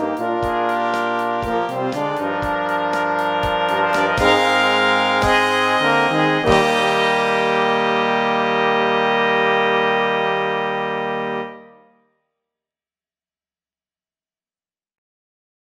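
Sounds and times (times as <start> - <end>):
brass quintet: 0.0 - 12.0.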